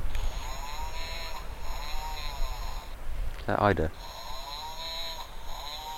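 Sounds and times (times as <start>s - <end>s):
puffin call played from a toy: 0.2s - 3.0s, 4.0s - 5.9s
speech: 3.5s - 4.2s.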